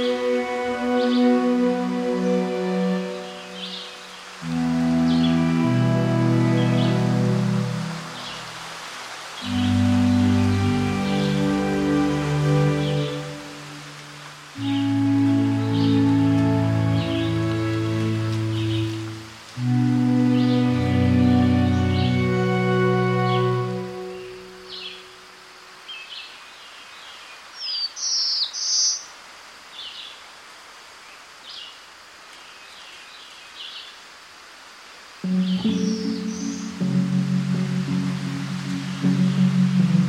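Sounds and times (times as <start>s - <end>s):
deep droning calls on Palm Hammock Trail, Florida: 0.0s - 8.6s, 9.4s - 25.1s, 35.2s - 40.0s.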